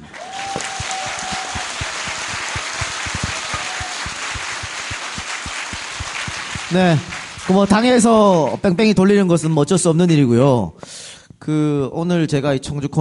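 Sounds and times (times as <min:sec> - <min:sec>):
audience applause: 0:00.0 - 0:08.5
speech: 0:06.7 - 0:13.0.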